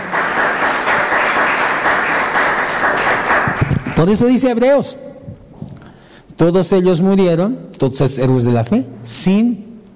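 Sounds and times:
audience applauding: 0:00.0 - 0:04.4
speech: 0:04.0 - 0:05.1, 0:06.4 - 0:09.6.

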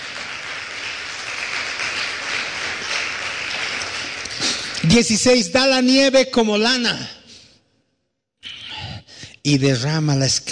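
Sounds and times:
audience applause: 0:00.0 - 0:04.9
speech: 0:04.9 - 0:07.2, 0:09.5 - 0:10.5.

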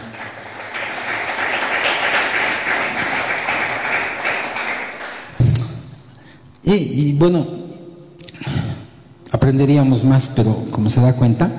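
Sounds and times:
audience applause: 0:00.0 - 0:05.4
speech: 0:06.7 - 0:07.6, 0:09.5 - 0:11.5.

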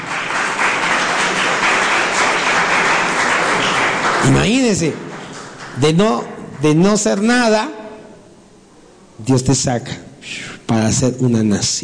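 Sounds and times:
audience applause: 0:00.0 - 0:05.9
speech: 0:04.2 - 0:05.1, 0:05.8 - 0:07.8, 0:09.2 - 0:11.8.

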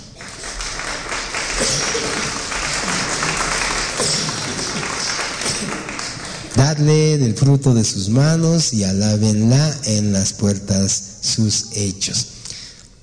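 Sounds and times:
audience applause: 0:00.0 - 0:06.5
speech: 0:06.6 - 0:12.4.

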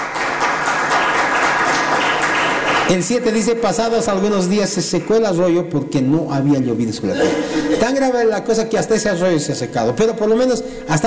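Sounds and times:
crowd applauding: 0:00.0 - 0:03.5
speech: 0:02.9 - 0:11.0
laughter: 0:07.0 - 0:08.2.

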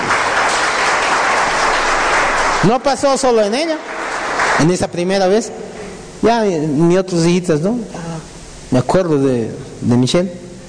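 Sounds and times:
audience applause at a religious gathering: 0:00.0 - 0:05.1
speech: 0:02.6 - 0:04.0, 0:04.6 - 0:05.6, 0:06.2 - 0:08.0, 0:08.7 - 0:10.4.

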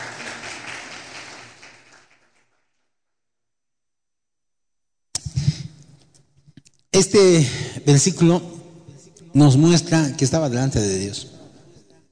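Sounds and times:
audience applause: 0:00.0 - 0:02.6
speech: 0:07.0 - 0:08.6, 0:09.3 - 0:11.4.

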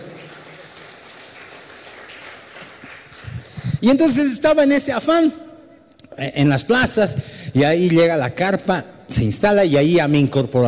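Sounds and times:
audience applause: 0:00.0 - 0:03.8
speech: 0:03.8 - 0:05.4, 0:06.2 - 0:10.6.

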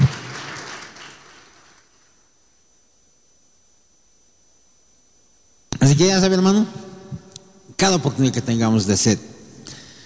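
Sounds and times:
audience applause: 0:00.0 - 0:01.9
speech: 0:05.8 - 0:06.8, 0:07.8 - 0:09.4.

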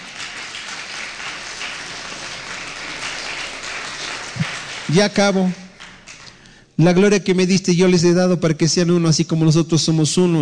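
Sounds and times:
audience applauding: 0:00.0 - 0:06.5
speech: 0:04.9 - 0:05.6, 0:06.8 - 0:10.4.

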